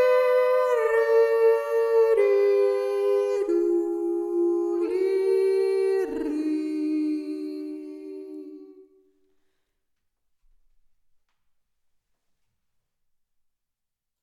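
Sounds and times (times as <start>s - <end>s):
person yodeling first voice: 0.0s - 8.9s.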